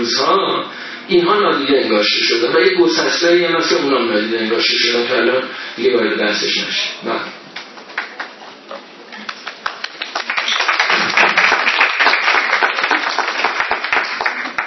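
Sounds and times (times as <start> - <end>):
speech: 0.0 - 7.3
audience at a talk clapping: 7.6 - 14.6.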